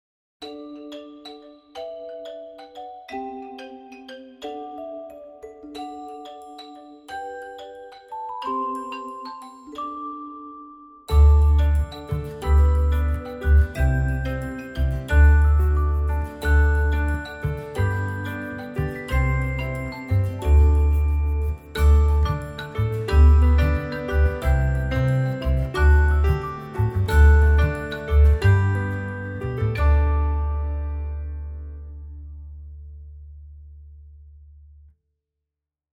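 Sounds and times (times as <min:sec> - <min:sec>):
xylophone music: 0:00.4 - 0:32.0.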